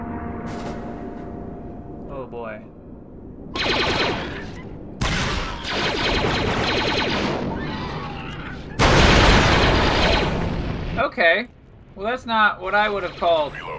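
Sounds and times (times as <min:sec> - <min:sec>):
speech: 0:02.3 - 0:02.8, 0:11.1 - 0:13.7
sniper rifle shots in a video game: 0:03.6 - 0:07.5, 0:08.8 - 0:10.7.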